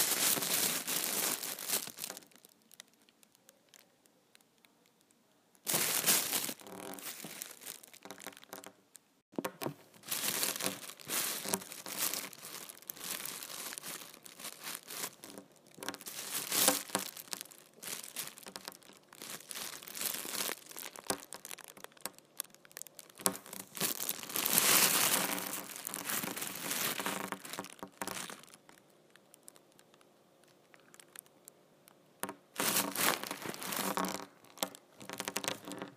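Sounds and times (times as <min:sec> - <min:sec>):
empty trash bag crumpled and crinkled: 0:00.0 - 0:02.6, 0:05.7 - 0:08.7, 0:10.0 - 0:28.8, 0:32.6 - 0:35.7.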